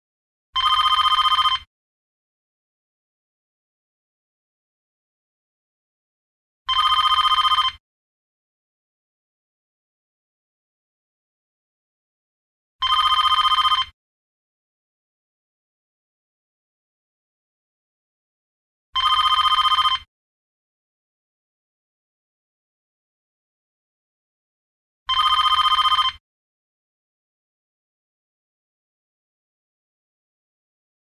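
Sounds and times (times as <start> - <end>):
telephone: 0.6 - 1.7, 6.7 - 7.8, 12.8 - 14.0, 19.0 - 20.1, 25.1 - 26.2.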